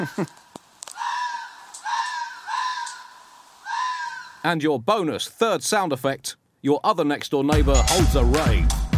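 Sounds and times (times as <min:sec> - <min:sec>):
speech: 0:00.0 - 0:00.4, 0:04.4 - 0:08.8
two foxes screaming while mating: 0:00.9 - 0:04.5.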